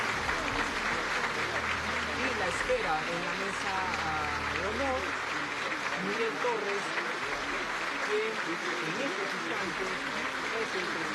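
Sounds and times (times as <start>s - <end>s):
applause in a parliament chamber for president-elect Keiko Fujimori: 0.0s - 11.1s
speech: 2.6s - 5.4s, 6.0s - 7.0s, 8.1s - 11.1s.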